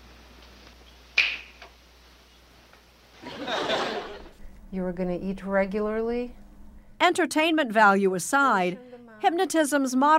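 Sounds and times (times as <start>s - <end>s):
finger snap: 0.6s - 1.7s
laughter: 3.2s - 4.4s
speech: 4.7s - 6.4s, 7.0s - 10.1s.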